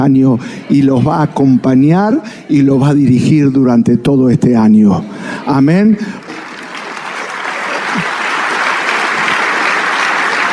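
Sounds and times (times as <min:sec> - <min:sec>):
speech: 0:00.0 - 0:06.3
laughter: 0:05.1 - 0:10.5
audience clapping: 0:06.2 - 0:10.5.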